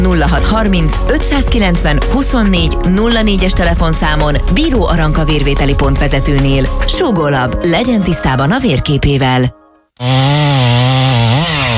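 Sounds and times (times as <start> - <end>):
speech: 0.1 - 10.8
chainsaw cutting down a pine tree: 10.0 - 11.7.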